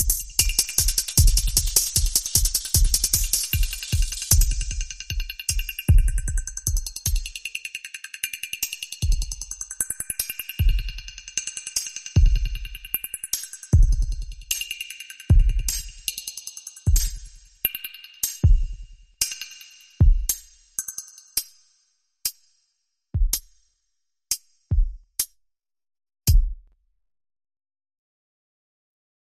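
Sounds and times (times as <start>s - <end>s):
hi-hat: 0.0s - 22.6s.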